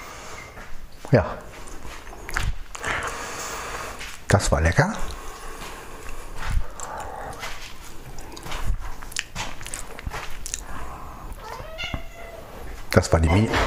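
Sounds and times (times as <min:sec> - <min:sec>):
speech: 0:01.1 - 0:01.5, 0:04.3 - 0:05.1, 0:13.0 - 0:13.6
tomcat meowing: 0:11.3 - 0:12.7.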